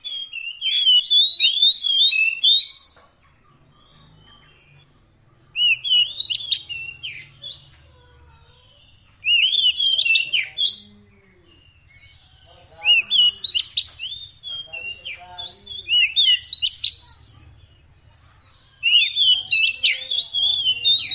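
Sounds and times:
Oriental magpie-robin song: 0:00.0 - 0:03.0, 0:05.5 - 0:07.8, 0:09.2 - 0:10.9, 0:11.5 - 0:17.3, 0:18.8 - 0:21.1.

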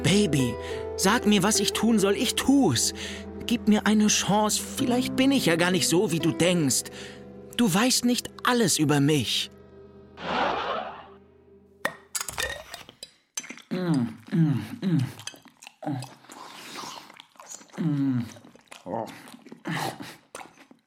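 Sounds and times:
speech: 0:00.1 - 0:09.6
voiced sounds: 0:10.2 - 0:11.2
cutlery clinking while eating mayonnaise: 0:12.1 - 0:13.2
wet chewing of mayonnaise: 0:12.9 - 0:20.8.

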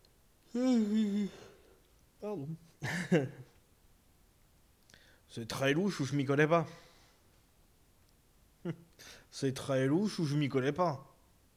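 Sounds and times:
person yawning: 0:00.5 - 0:03.3
speech: 0:00.6 - 0:01.5, 0:02.2 - 0:03.5, 0:05.3 - 0:06.9, 0:08.6 - 0:11.1.

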